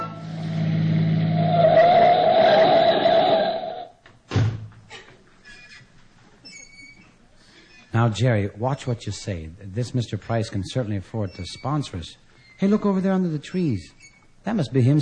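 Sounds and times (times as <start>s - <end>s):
car driving off: 0.2s - 3.9s
speech: 8.0s - 15.0s.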